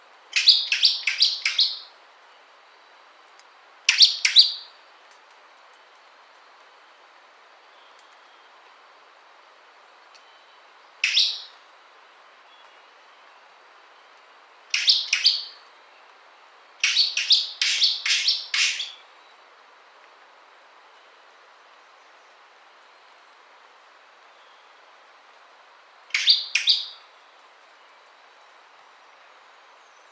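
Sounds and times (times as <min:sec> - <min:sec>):
bird chirping: 0:00.4 - 0:01.9, 0:03.6 - 0:04.7, 0:10.2 - 0:11.6, 0:14.0 - 0:15.7, 0:16.6 - 0:19.4, 0:25.5 - 0:27.1.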